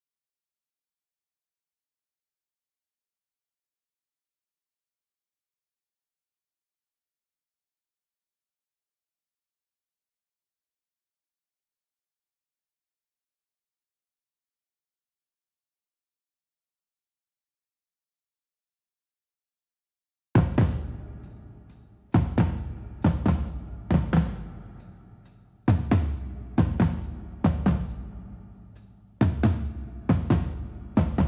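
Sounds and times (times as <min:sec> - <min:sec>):
drums: 0:20.4 - 0:31.2.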